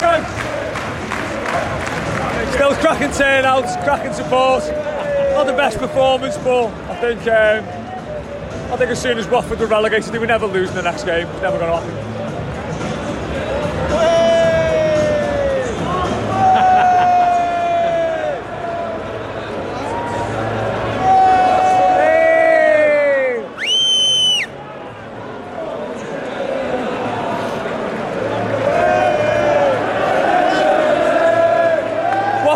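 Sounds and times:
large football crowd voices: 0:00.0 - 0:32.5
music: 0:00.0 - 0:32.5
speech: 0:02.8 - 0:07.8, 0:08.7 - 0:12.1
high whistle-like burst: 0:23.6 - 0:24.6.

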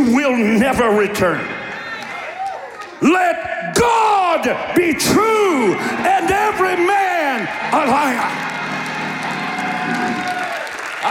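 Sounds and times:
church audience shouting and cheering: 0:00.0 - 0:11.0
speech: 0:00.1 - 0:01.5, 0:03.0 - 0:08.5
church audience applauding: 0:01.7 - 0:03.1, 0:05.4 - 0:11.0.

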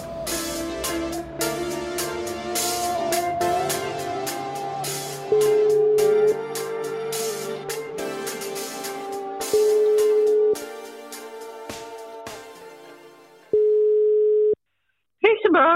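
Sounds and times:
rhythmic music: 0:00.0 - 0:13.8
telephone ringback tones of outgoing call: 0:05.3 - 0:06.2, 0:09.6 - 0:10.6, 0:13.5 - 0:14.6.

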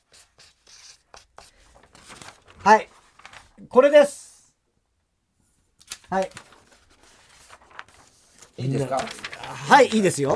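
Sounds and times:
pen writing big letters: 0:00.0 - 0:01.6
speech: 0:02.6 - 0:02.9, 0:03.7 - 0:04.2, 0:06.1 - 0:06.5, 0:08.6 - 0:10.3.

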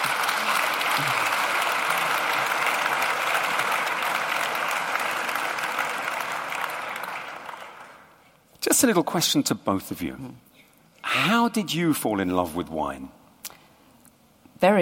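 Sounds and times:
audience applause: 0:00.0 - 0:08.2
speech: 0:08.7 - 0:10.5, 0:11.2 - 0:13.2, 0:14.6 - 0:14.8.

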